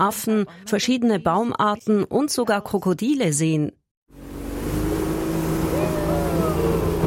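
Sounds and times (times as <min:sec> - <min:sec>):
speech: 0:00.0 - 0:03.8
engine of a small wooden motorboat cornering and accelerating: 0:04.1 - 0:07.0
water rushing past a small wooden motorboat: 0:04.1 - 0:07.0.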